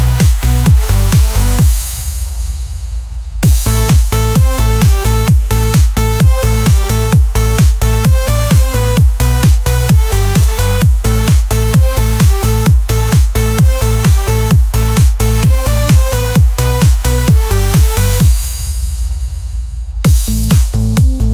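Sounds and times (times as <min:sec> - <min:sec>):
electric surge bass: 0:00.0 - 0:21.3.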